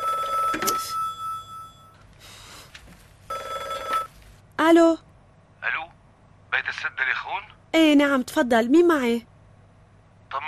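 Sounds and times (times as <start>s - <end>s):
telephone ringing with an incoming call: 0.0s - 2.1s, 3.3s - 4.1s
speech: 4.7s - 5.0s, 7.8s - 9.3s.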